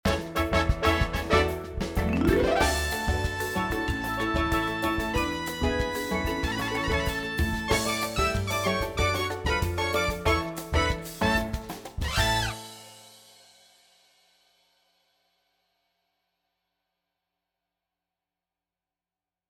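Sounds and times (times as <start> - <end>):
instrumental scene change music: 0.1 - 13.3.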